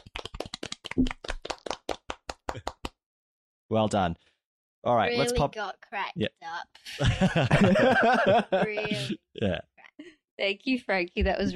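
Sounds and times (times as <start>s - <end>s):
few people clapping: 0.0s - 3.0s
speech: 1.0s - 1.2s, 3.7s - 9.7s, 10.4s - 11.5s
laughter: 6.9s - 9.6s.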